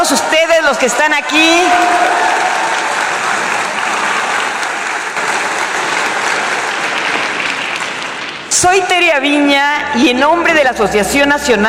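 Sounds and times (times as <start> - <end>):
speech: 0.0 - 2.4, 8.6 - 11.6
crowd applauding: 1.4 - 8.6.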